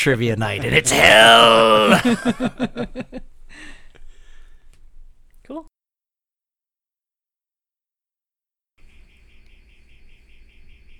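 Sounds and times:
speech: 0.0 - 3.2
laughter: 0.4 - 4.0
gate alarm chirping: 8.9 - 10.9.

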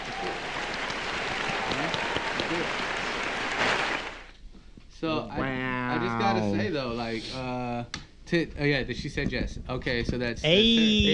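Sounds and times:
clapping: 0.0 - 4.3
speech: 5.0 - 11.1.

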